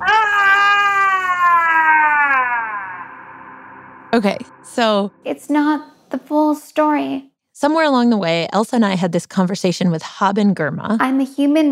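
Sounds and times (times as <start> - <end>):
person screaming: 0.0 - 3.9
speech: 4.1 - 11.7.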